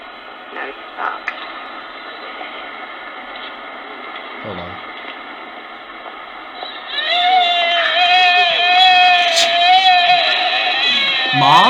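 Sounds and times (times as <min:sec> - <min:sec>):
speech: 0:04.4 - 0:04.9, 0:11.4 - 0:11.6
deer call: 0:06.6 - 0:11.6.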